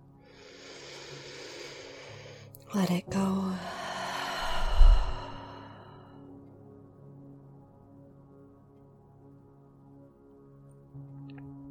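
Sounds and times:
slow soft inhale during a guided breathing exercise: 0.3 - 2.6, 3.6 - 6.3
speech: 2.7 - 3.8.

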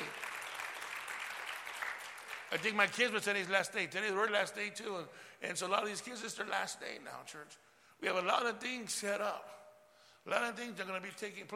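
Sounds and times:
audience clapping: 0.0 - 3.3
speech: 2.5 - 9.6, 10.2 - 11.5.

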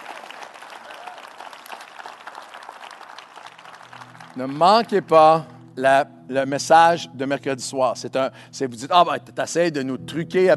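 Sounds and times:
audience applause: 0.0 - 5.5
speech: 4.4 - 10.5.

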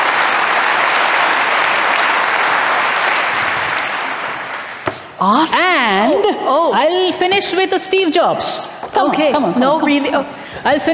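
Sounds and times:
audience applause: 0.0 - 4.8
speech: 5.2 - 10.9.

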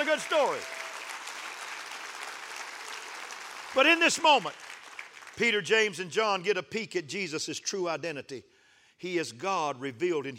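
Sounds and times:
audience clapping hands: 0.0 - 6.4
speech: 0.1 - 0.8, 3.7 - 4.6, 5.4 - 10.3.

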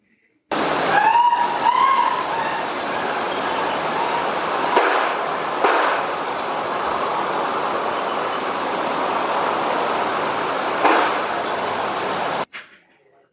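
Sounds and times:
steady hiss: 0.5 - 12.5
gunshots: 4.7 - 6.1, 10.8 - 11.2.

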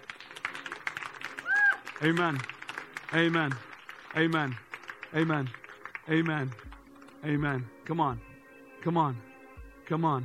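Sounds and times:
crowd clapping hands: 0.0 - 7.7
brief high-pitched shout: 1.4 - 1.8
speech: 2.0 - 2.5, 3.1 - 9.3, 9.9 - 10.2.

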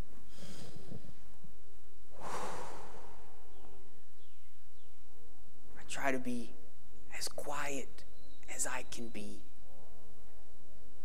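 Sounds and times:
person taking a deep breath: 0.3 - 1.2, 2.1 - 3.7
faint bird chirps: 2.2 - 5.2, 5.8 - 10.2
speech: 6.0 - 6.6, 7.2 - 9.5.

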